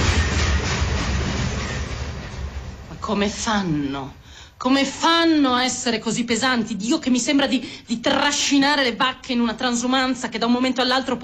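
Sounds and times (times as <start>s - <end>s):
regional train arriving at station platform 1: 0.0s - 4.3s
speech: 3.1s - 11.2s.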